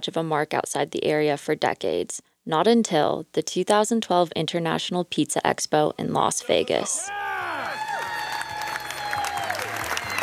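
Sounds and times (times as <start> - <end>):
speech: 0.0 - 7.3
crowd cheering at International Pizza Expo: 6.5 - 10.2.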